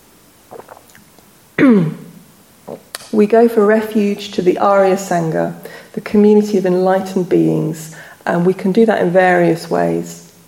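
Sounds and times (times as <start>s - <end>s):
faint soft slurping sips: 0.5s - 1.1s
speech: 3.2s - 10.2s.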